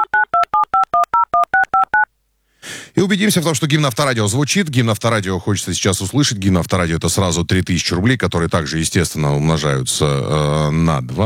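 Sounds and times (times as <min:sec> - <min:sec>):
telephone number being dialed: 0:00.0 - 0:02.1
speech: 0:03.0 - 0:11.2.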